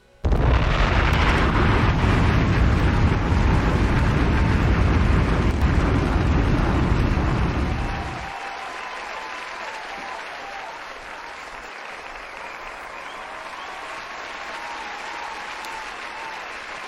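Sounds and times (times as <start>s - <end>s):
audience applause: 0.9s - 16.8s.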